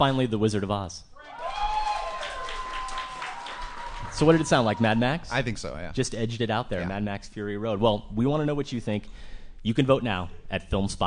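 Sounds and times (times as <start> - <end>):
speech: 0.0 - 1.4, 4.2 - 11.0
audience clapping: 1.3 - 5.3.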